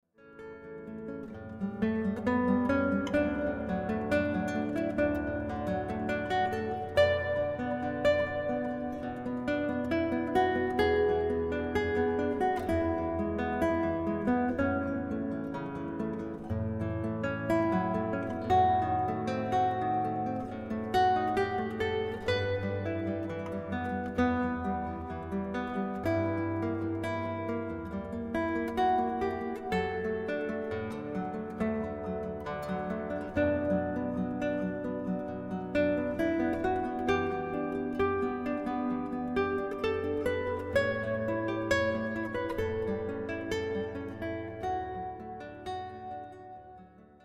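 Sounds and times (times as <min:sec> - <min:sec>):
classical guitar: 0:00.1 - 0:47.2.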